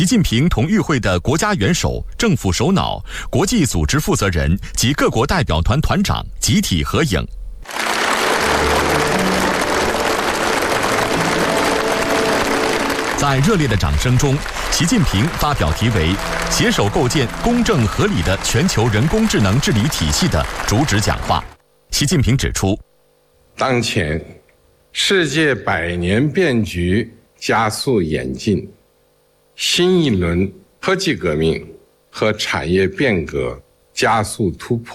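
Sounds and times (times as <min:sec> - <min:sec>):
speech: 0:00.0 - 0:07.9, 0:13.2 - 0:22.9, 0:23.6 - 0:24.4, 0:25.0 - 0:28.8, 0:29.6 - 0:34.9
warm applause: 0:07.7 - 0:21.6.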